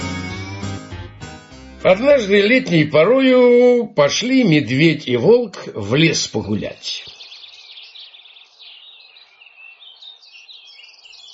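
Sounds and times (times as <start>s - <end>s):
speech: 1.8s - 7.1s
kinglet singing in a summer forest: 7.0s - 11.3s.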